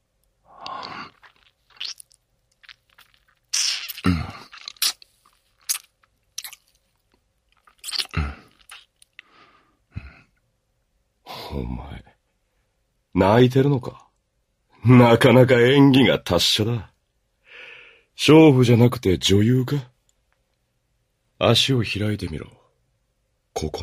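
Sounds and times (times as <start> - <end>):
breathy sighs and murmurs: 0.4 - 1.2
wet nibbling on an ear: 0.6 - 9.2
speech: 11.6 - 12.1, 13.2 - 14.0, 14.8 - 16.9, 18.2 - 19.9, 21.4 - 22.6, 23.6 - 23.8.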